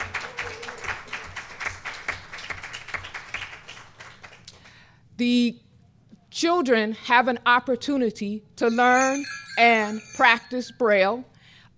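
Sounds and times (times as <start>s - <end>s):
crowd clapping: 0.0s - 4.6s
speech: 5.2s - 5.6s, 6.4s - 11.7s.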